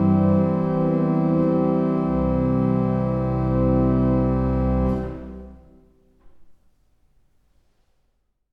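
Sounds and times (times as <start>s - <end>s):
organ playing an adagio in C major: 0.0s - 5.8s.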